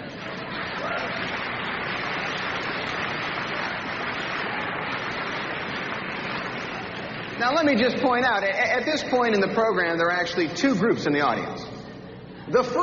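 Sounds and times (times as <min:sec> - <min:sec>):
audience applauding: 0:00.0 - 0:07.8
speech: 0:07.4 - 0:11.8, 0:12.5 - 0:12.8.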